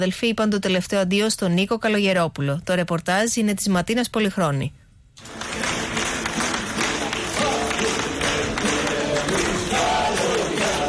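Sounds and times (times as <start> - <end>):
speech: 0.0 - 5.4
crowd applauding at a funeral: 5.2 - 10.8
relatives and friends singing at a funeral: 6.8 - 10.8.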